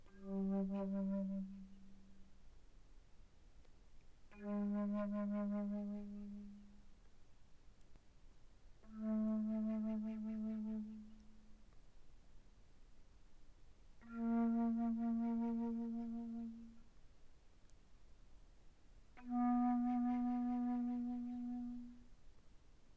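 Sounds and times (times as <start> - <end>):
alto flute playing pianissimo: 0.0 - 2.6, 4.2 - 7.0, 8.7 - 11.9, 14.0 - 17.0, 19.0 - 22.9.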